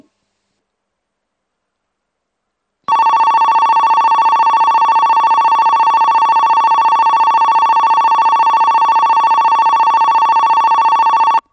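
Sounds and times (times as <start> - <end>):
Kogota platform 3 sounds: 2.9 - 11.5.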